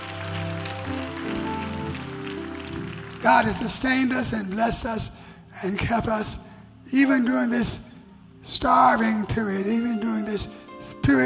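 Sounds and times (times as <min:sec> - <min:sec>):
audience applause: 0:00.0 - 0:04.6
speech: 0:03.2 - 0:07.8, 0:08.4 - 0:11.2.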